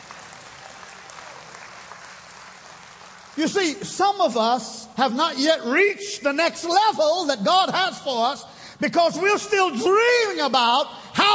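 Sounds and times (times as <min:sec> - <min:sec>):
audience applause: 0:00.0 - 0:03.4
speech: 0:03.4 - 0:11.3.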